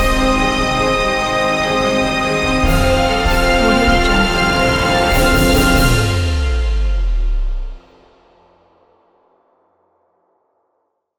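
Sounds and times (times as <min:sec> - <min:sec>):
epic trailer music: 0:00.0 - 0:08.3.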